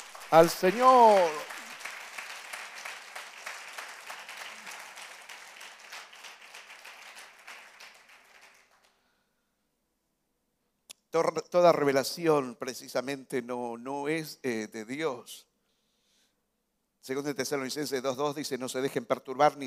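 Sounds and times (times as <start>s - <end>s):
audience applause: 0.0s - 8.9s
speech: 0.3s - 1.5s, 11.1s - 15.5s, 17.0s - 19.6s.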